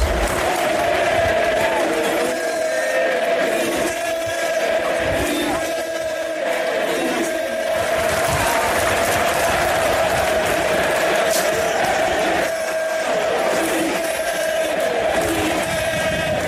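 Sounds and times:
football fans chanting in stadium: 0:00.0 - 0:16.4.

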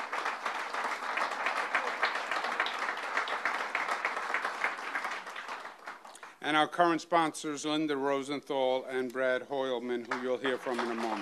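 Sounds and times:
audience round of applause: 0:00.0 - 0:06.3, 0:10.1 - 0:11.2
speech: 0:06.5 - 0:11.2.

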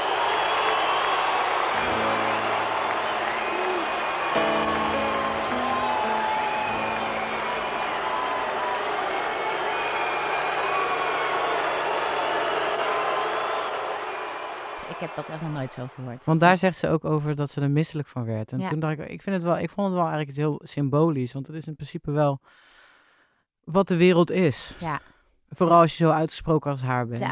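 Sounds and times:
crowd booing: 0:00.0 - 0:16.2
speech: 0:15.0 - 0:22.7, 0:23.7 - 0:27.3.

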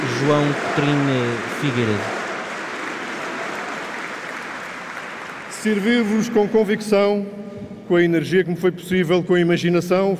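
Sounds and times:
standing ovation in a congress hall: 0:00.0 - 0:06.5
speech: 0:00.2 - 0:02.2, 0:05.6 - 0:10.1.

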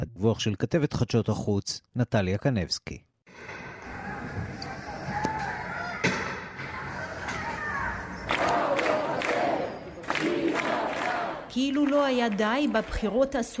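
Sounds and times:
speech: 0:00.0 - 0:03.6, 0:11.6 - 0:13.5
protesting crowd roaring and shouting: 0:03.6 - 0:11.5.

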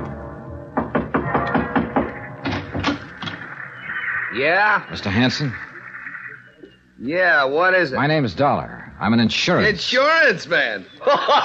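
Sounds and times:
knocking on a wooden door: 0:00.8 - 0:02.1
speech: 0:04.4 - 0:05.6, 0:07.0 - 0:11.4
laughter: 0:11.0 - 0:11.4.

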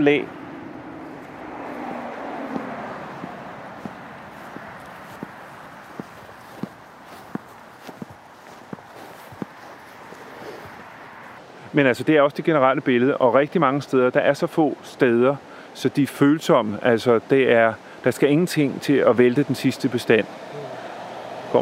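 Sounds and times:
speech: 0:00.0 - 0:00.4, 0:11.8 - 0:20.6
footsteps walking out to a roadside ditch: 0:00.8 - 0:11.4.

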